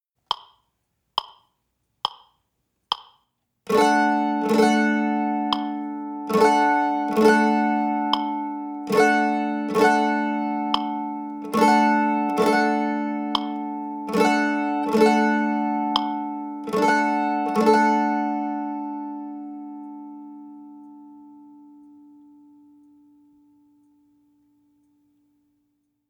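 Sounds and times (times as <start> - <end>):
mandolin waltz chop: 3.7 - 21.7.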